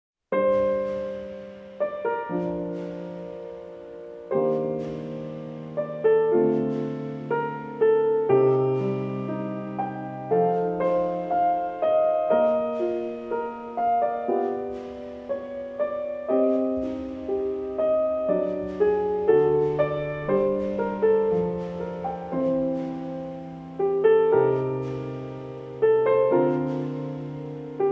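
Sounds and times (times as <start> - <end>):
solo piano: 0.3 - 27.9.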